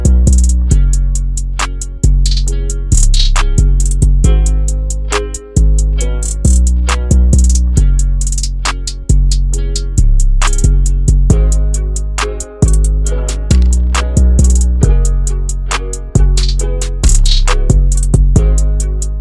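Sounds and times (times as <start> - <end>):
instrumental music: 0.0 - 19.1.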